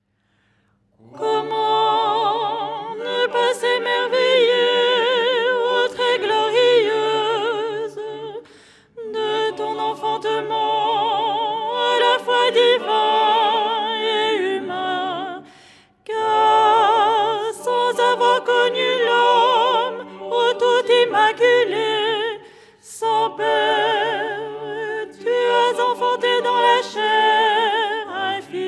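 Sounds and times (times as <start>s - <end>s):
soprano singing: 1.1s - 8.4s, 9.0s - 28.6s.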